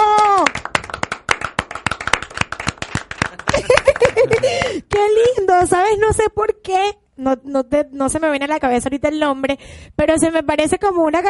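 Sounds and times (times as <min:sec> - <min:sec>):
loud applause: 0:00.0 - 0:04.9
laughter: 0:03.2 - 0:04.8
speech: 0:05.6 - 0:11.2.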